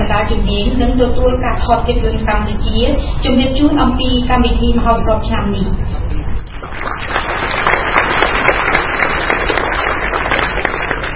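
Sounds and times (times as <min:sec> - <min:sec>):
speech: 0:00.2 - 0:06.0
audience applauding in Chaktomuk theatre at a Cambodian film festival: 0:06.5 - 0:11.1.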